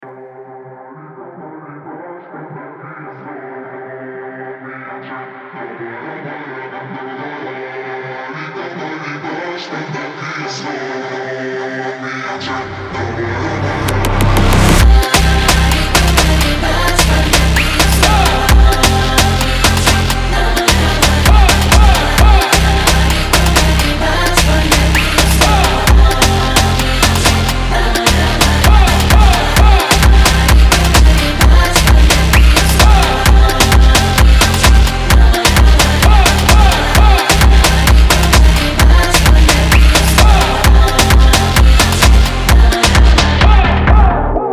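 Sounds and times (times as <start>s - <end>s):
Bulgarian funk music: 13.0s - 44.4s.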